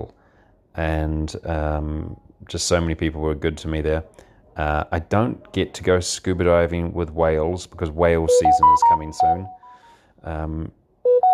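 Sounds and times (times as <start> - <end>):
speech: 0.8 - 9.6, 10.2 - 10.8
incoming call alert tone on phone: 8.3 - 9.8, 11.1 - 11.3.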